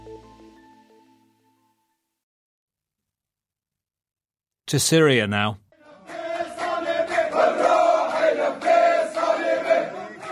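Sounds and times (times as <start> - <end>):
speech: 4.7 - 5.6
demonstrators chanting while marching through a Damascus neighbourhood in protest: 5.7 - 10.2.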